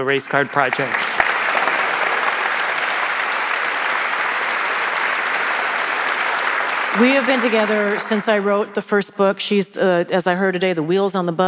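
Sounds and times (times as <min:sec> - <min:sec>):
speech: 0:00.0 - 0:01.2, 0:07.0 - 0:11.4
large audience applause: 0:00.0 - 0:09.0.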